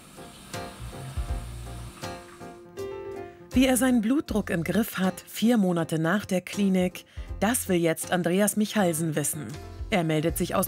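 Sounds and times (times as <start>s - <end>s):
shower water spraying on legs: 0.0s - 2.6s
speech: 3.6s - 10.6s.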